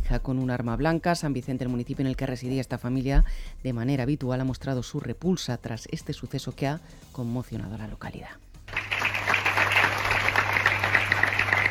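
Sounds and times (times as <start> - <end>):
speech: 0.1 - 8.5
applause from townspeople after a minute's silence: 8.7 - 11.6.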